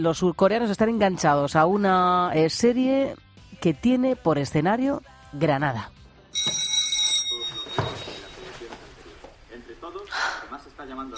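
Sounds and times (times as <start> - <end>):
speech: 0.0 - 6.0, 10.8 - 11.1
doorbell of the Hostal Bonita in Granada chiming: 6.3 - 8.5.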